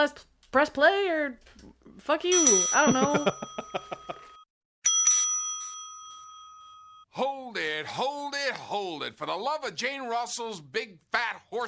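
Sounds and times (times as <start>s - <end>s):
speech: 0.0s - 4.1s, 7.2s - 11.6s
bell ringing: 2.3s - 7.1s.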